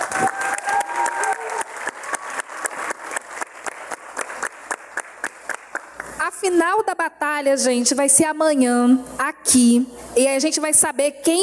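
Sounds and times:
audience applause: 0.0 - 6.0
speech: 6.4 - 11.4.

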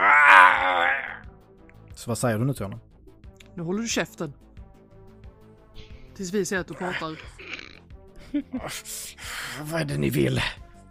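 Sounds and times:
man screaming in pain: 0.0 - 1.2
speech: 2.0 - 2.9, 3.6 - 4.4, 6.2 - 7.4, 8.3 - 10.6.

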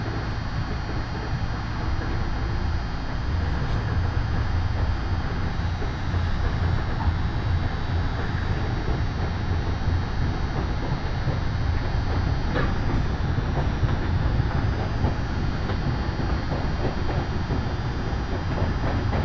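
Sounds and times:
Yoro Railway train rumbling: 0.0 - 19.2.

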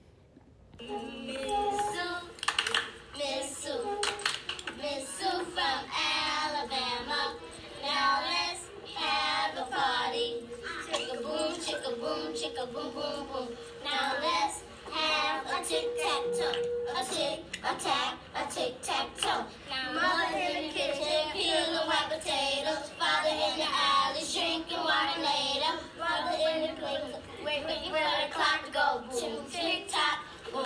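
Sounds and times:
children's sharp hand claps keeping the beat: 1.4 - 3.0, 3.9 - 4.8
group of children chanting a clapping rhyme: 4.8 - 30.6.

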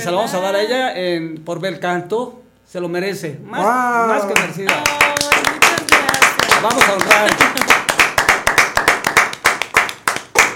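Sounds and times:
speech: 0.0 - 5.2, 6.6 - 7.6
audience applause: 4.3 - 10.5.

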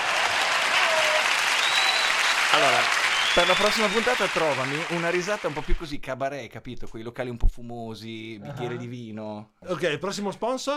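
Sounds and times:
large crowd applause sound effect: 0.0 - 5.9
speech: 2.5 - 10.7.

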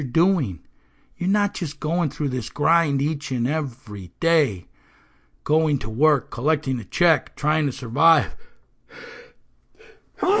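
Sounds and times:
speech: 0.0 - 0.6, 1.2 - 4.7, 5.5 - 9.2, 10.2 - 10.3
breathy inhales: 0.7 - 1.2, 4.7 - 5.4, 8.4 - 10.1
sneeze: 10.2 - 10.3.

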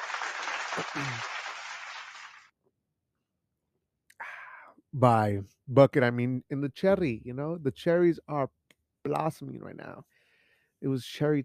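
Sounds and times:
applause: 0.0 - 2.5
speech: 0.8 - 1.4, 5.0 - 10.1, 10.8 - 11.4.

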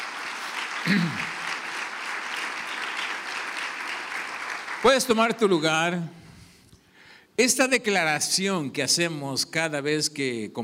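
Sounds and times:
crowd applauding: 0.0 - 5.5
speech: 0.8 - 1.3, 4.8 - 6.2, 7.4 - 10.6.

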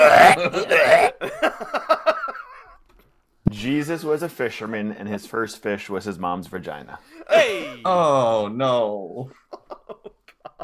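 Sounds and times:
voice imitating retching: 0.0 - 1.2
speech: 0.0 - 1.8, 3.7 - 10.0
laughter: 0.4 - 2.8, 7.2 - 8.4, 9.2 - 10.6.

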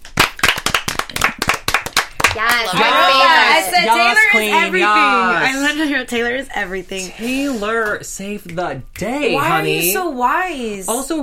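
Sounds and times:
round of applause: 0.0 - 3.2
speech: 2.3 - 11.2.

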